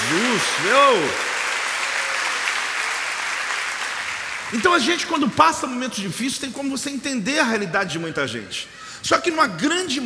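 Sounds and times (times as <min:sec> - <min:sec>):
audience applause: 0:00.0 - 0:05.3
speech: 0:00.4 - 0:01.3, 0:04.5 - 0:10.0.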